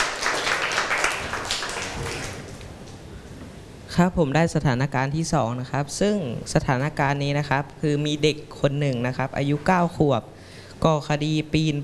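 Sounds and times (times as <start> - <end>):
classroom clapping for a student: 0.0 - 2.7
speech: 4.0 - 11.8.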